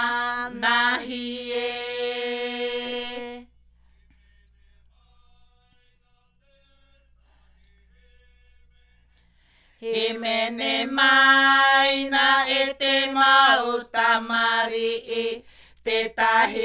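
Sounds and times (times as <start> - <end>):
Maohi polyphonic himene ruau chants: 0.0 - 3.5, 9.8 - 16.6.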